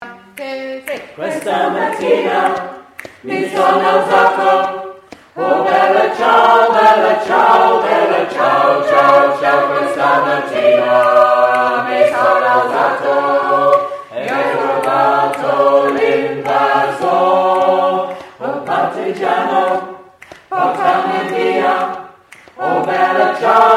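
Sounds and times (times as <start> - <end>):
song: 0.3 - 23.7.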